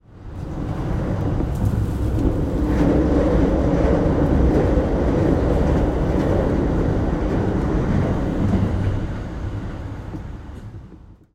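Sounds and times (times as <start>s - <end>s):
train: 0.0s - 11.3s.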